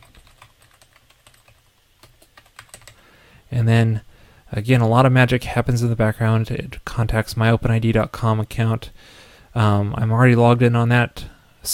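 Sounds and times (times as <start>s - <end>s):
typing a URL on a computer keyboard: 0.0s - 3.0s
speech: 3.5s - 11.7s.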